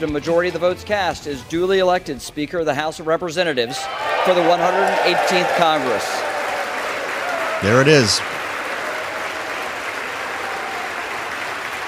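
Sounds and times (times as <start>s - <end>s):
speech: 0.0s - 6.2s, 7.6s - 8.4s
lawmakers applauding in the chamber: 3.7s - 11.8s.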